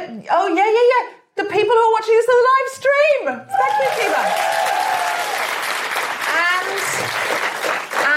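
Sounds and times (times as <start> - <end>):
speech: 0.2 - 4.6
audience round of applause: 3.6 - 8.1.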